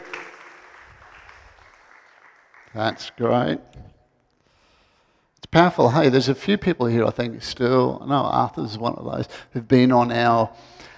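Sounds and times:
audience applause: 0.0s - 3.2s
speech: 2.7s - 3.9s, 5.5s - 10.9s.

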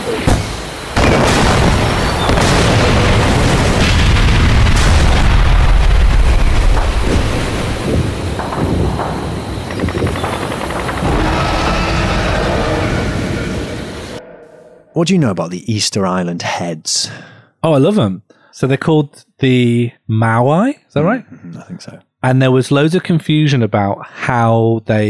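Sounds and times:
battle explosions and artillery fire: 0.0s - 14.2s
speech: 15.0s - 25.0s.

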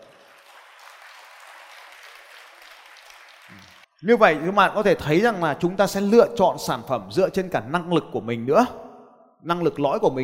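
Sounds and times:
crowd clapping: 0.0s - 3.9s
speech: 3.5s - 8.8s, 9.4s - 10.2s.

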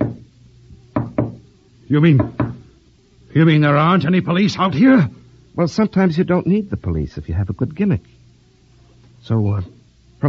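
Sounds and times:
speech: 1.9s - 2.4s, 3.4s - 8.2s, 9.2s - 10.2s
knocks from a spirit rapping device with hammer in wooden box: 2.2s - 2.6s.

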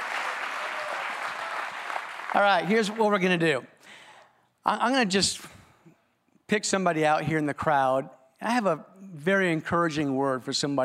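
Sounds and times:
audience applause for keyboard player: 0.0s - 3.3s
speech: 2.4s - 3.7s, 4.6s - 5.6s, 6.5s - 10.8s.

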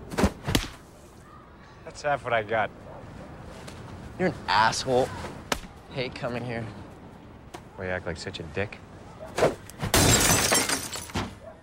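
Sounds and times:
speech: 1.9s - 2.9s, 4.2s - 5.3s, 6.0s - 6.8s, 7.8s - 8.8s
ball smashing a glass window: 9.9s - 11.3s.

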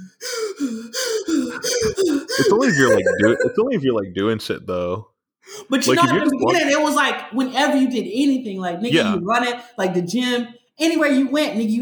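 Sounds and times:
person imitating gasping for breath while wearing a surgical mask: 0.0s - 4.4s, 8.9s - 9.2s
speech: 0.6s - 11.7s
laughter: 1.5s - 5.0s, 5.8s - 6.9s, 8.9s - 9.3s.

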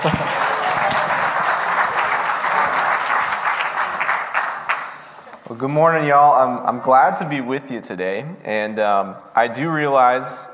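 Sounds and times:
speech: 0.0s - 0.3s, 5.5s - 10.5s
audience applause: 0.0s - 5.3s.

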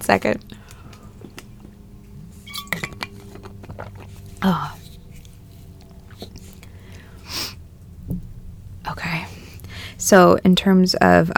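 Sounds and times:
low rumble: 0.0s - 11.3s
speech: 0.1s - 0.6s, 4.4s - 4.8s, 10.1s - 11.3s
glass clinking while getting water: 2.4s - 3.4s.

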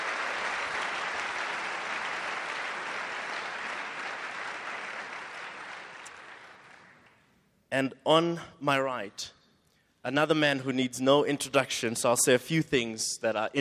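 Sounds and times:
audience applause: 0.0s - 7.1s
speech: 7.7s - 9.4s, 10.0s - 13.5s.

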